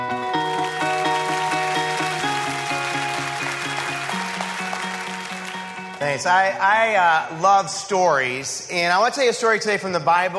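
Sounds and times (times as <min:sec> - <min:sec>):
church congregation applauding to welcome a guest speaker: 0:00.0 - 0:06.2
music playing a repeated stepping pattern of sustained notes: 0:00.0 - 0:06.8
speech: 0:06.1 - 0:10.3.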